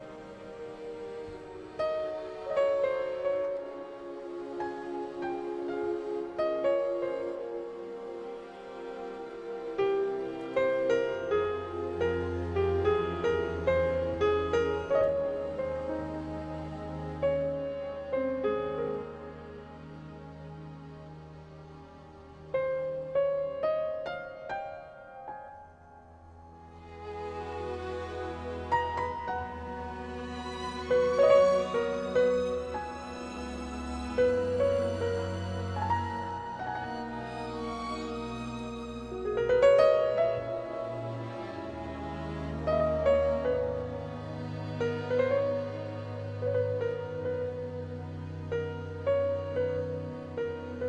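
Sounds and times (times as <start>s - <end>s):
tango music: 0.0s - 50.8s.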